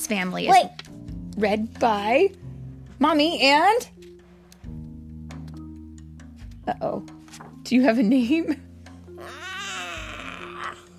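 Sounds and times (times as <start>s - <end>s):
speech: 0.1s - 2.4s, 3.0s - 4.0s, 6.7s - 9.5s
young child imitating a cat's meow: 9.2s - 10.9s.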